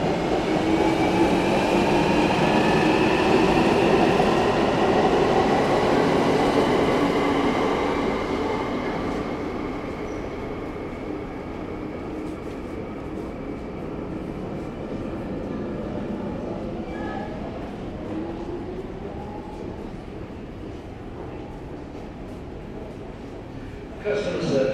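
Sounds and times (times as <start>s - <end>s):
London Underground trains arriving and departing: 0.0s - 24.7s
people chatting in a London Underground station: 24.0s - 24.7s.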